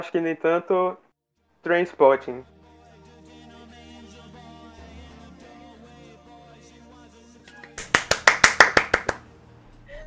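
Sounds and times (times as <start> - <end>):
speech: 0.0 - 1.0, 1.6 - 2.6
hand clapping: 7.5 - 9.3.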